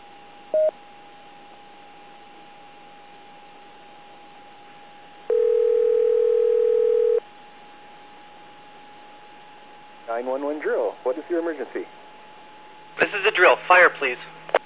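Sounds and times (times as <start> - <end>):
radio autopatch telephone dial tone: 5.3 - 7.2
speech: 10.2 - 12.0, 13.0 - 14.3.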